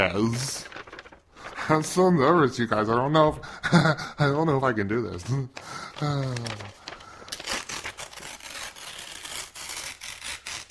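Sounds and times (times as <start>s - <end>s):
speech: 0.1s - 0.7s, 1.7s - 6.8s
something tough being ripped open by hand: 6.0s - 10.6s.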